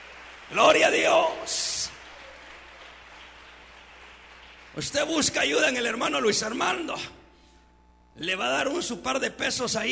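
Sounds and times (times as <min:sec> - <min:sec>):
audience applause: 0:00.0 - 0:04.9
speech: 0:00.5 - 0:01.7, 0:04.8 - 0:07.2, 0:08.2 - 0:09.9.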